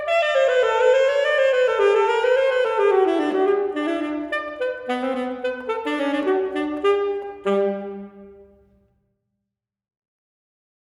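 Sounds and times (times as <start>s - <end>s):
saxophone ending phrase: 0.0s - 8.6s.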